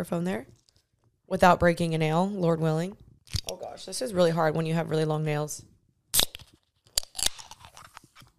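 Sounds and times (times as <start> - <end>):
speech: 0.0 - 0.6, 1.3 - 3.0, 3.7 - 5.7
can of Alani Nu peach drink being opened: 6.2 - 8.0.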